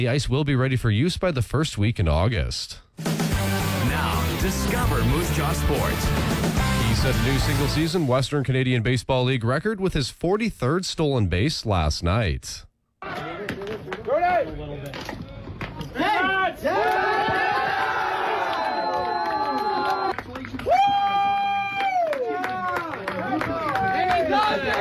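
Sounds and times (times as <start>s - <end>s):
speech: 0.0s - 3.2s, 4.0s - 12.7s
Moose Jaw Miller Express baseball players shouting and cheering in their dugout: 3.6s - 8.1s, 13.0s - 24.7s.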